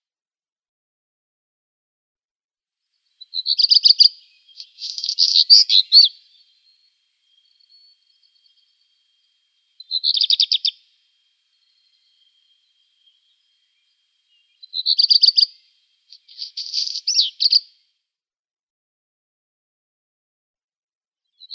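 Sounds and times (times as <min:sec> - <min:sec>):
black redstart song: 0:03.6 - 0:17.6.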